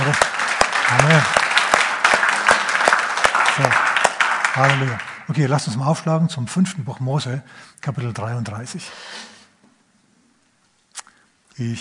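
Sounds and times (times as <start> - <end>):
audience applause: 0.0 - 5.8
speech: 4.6 - 9.3, 11.6 - 11.7.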